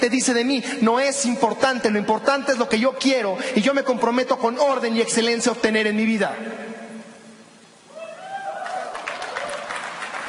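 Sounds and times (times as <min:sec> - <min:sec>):
speech: 0:00.0 - 0:06.7
audience applause at a motivational talk on the subconscious mind: 0:08.2 - 0:10.2.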